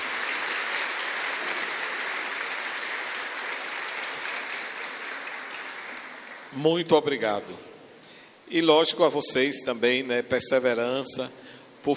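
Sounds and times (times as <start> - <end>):
warm round of applause: 0.0 - 6.6
speech: 6.5 - 7.7, 8.5 - 11.9.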